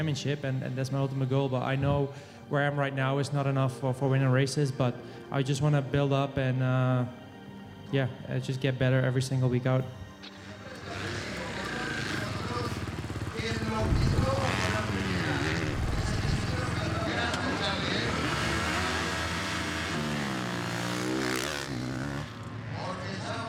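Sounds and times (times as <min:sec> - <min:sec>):
speech: 0:00.0 - 0:07.2, 0:07.9 - 0:10.4
racing motorcycle engine revving: 0:10.2 - 0:23.4.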